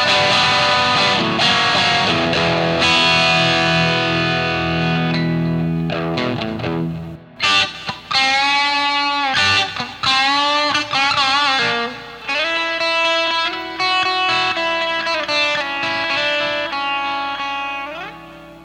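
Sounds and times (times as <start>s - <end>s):
guitar tone through a tube driver pedal: 0.0s - 18.6s.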